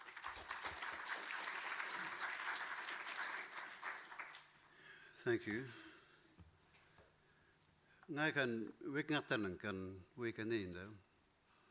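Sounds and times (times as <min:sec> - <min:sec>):
audience applause welcoming a speaker: 0:00.0 - 0:04.8
speech: 0:05.2 - 0:05.9, 0:08.1 - 0:11.1.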